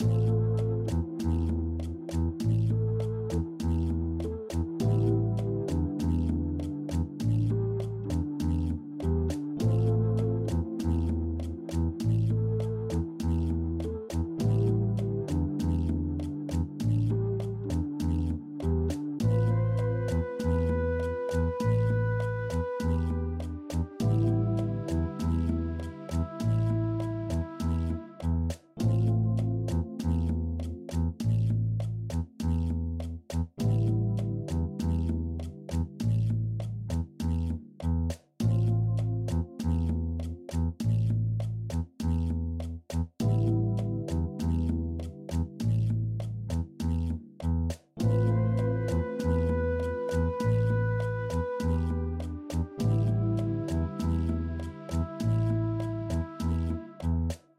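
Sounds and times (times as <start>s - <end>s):
hold music loop: 0.0s - 57.5s.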